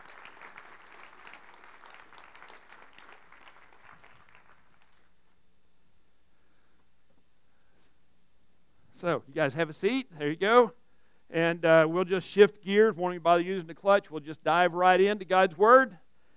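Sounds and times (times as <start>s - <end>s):
church congregation applauding a newly welcomed elder: 0.0s - 5.3s
speech: 9.0s - 16.0s.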